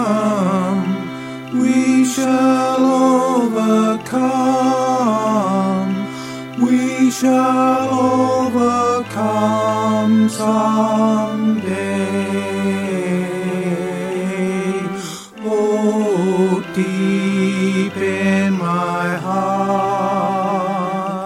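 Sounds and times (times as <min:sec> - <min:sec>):
tenor singing: 0:00.0 - 0:21.2.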